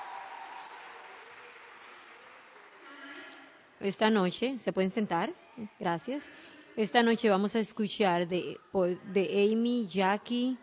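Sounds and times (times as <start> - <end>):
audience applauding: 0.0 - 3.2
speech: 3.8 - 10.6.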